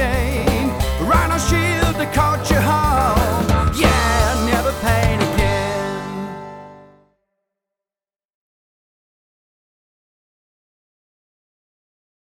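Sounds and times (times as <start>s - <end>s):
jingle: 0.0s - 6.8s.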